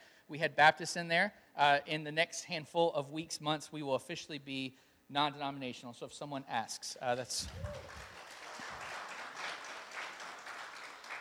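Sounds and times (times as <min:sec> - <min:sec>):
speech: 0:00.3 - 0:08.0
audience applause: 0:07.4 - 0:11.1.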